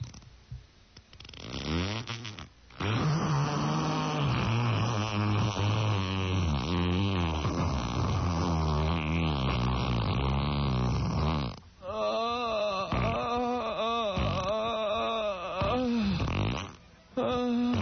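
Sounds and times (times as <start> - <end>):
person dry heaving over a toilet: 1.2 - 17.7.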